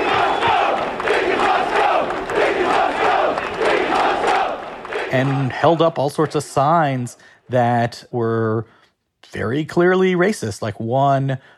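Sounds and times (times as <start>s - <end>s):
rioting crowd of police officers shouting: 0.0s - 7.0s
speech: 5.2s - 11.5s.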